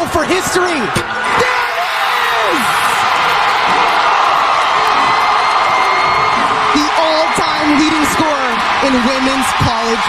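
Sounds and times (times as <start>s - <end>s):
basketball arena crowd cheering: 0.0s - 10.0s
speech: 0.1s - 1.7s, 7.7s - 10.0s
whoops and shouts: 1.3s - 8.5s.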